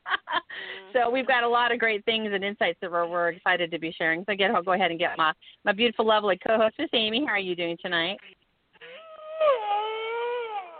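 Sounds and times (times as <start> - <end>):
speech: 0.9 - 8.4
cow crying sound effect: 8.8 - 10.7.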